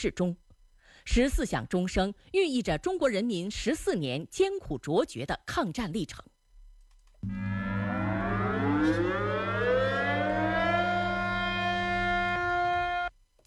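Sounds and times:
speech: 0.0s - 6.3s, 7.2s - 7.5s
city-wide air-raid siren in Shenyang: 7.2s - 13.1s.

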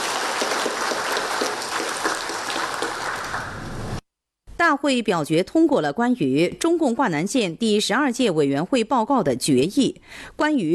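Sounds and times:
warm applause from the hall: 0.0s - 4.0s
speech: 4.6s - 10.7s.

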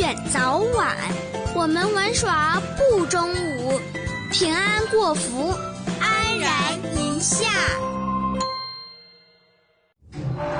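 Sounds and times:
speech: 0.4s - 5.8s, 6.4s - 8.0s
ding-dong notification chime: 7.9s - 9.6s.

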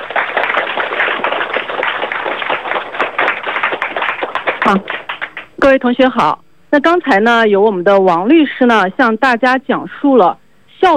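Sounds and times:
audience applause: 0.0s - 5.6s
speech: 4.7s - 5.0s, 5.6s - 10.9s.

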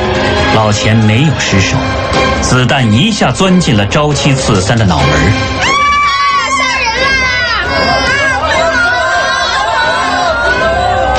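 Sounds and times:
speech: 0.6s - 5.7s
crowd screaming in panic: 5.6s - 11.1s.

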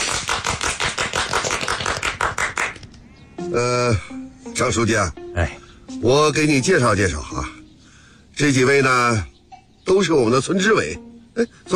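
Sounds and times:
people clapping: 0.0s - 3.0s
speech: 3.5s - 7.6s, 8.4s - 11.7s.

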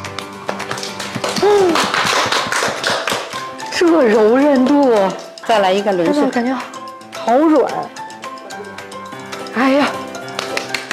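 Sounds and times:
audience applause for a women's team member: 0.7s - 3.5s
vocal whoop: 1.4s - 1.9s
speech: 3.8s - 8.0s, 9.6s - 10.0s.

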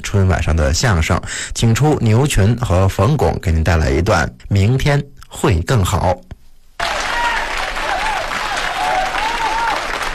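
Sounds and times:
speech: 0.1s - 6.3s
audience applause: 6.8s - 10.1s.

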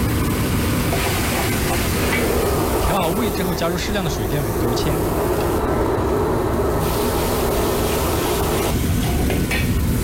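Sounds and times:
stir-frying in a wok with green Sichuan pepper oil and chopped scallions: 0.0s - 3.5s, 6.8s - 10.0s
speech: 3.3s - 6.3s.

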